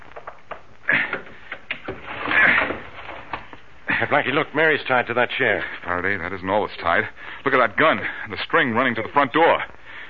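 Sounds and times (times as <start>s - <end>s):
window being pried open with a piece of steel: 0.0s - 3.5s
speech: 4.0s - 9.8s.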